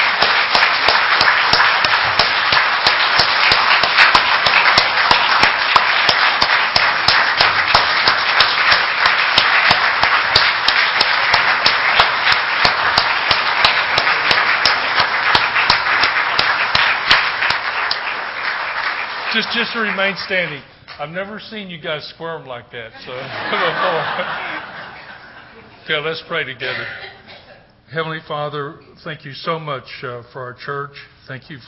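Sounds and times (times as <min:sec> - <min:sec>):
church audience clapping hands: 0:00.0 - 0:20.7, 0:23.3 - 0:25.3
speech: 0:19.5 - 0:24.6, 0:25.9 - 0:27.1, 0:27.9 - 0:31.6
laughter: 0:23.0 - 0:25.8.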